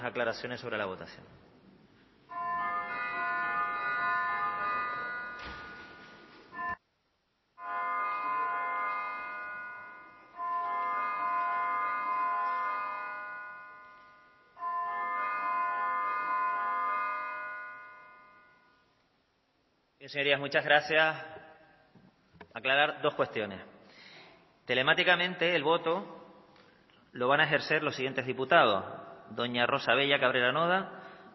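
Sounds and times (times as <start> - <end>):
speech: 0.0 - 1.5, 20.1 - 21.3, 22.6 - 23.7, 24.7 - 26.2, 27.1 - 31.3
parliament call-to-vote bell ringing: 2.3 - 6.8, 7.6 - 18.8.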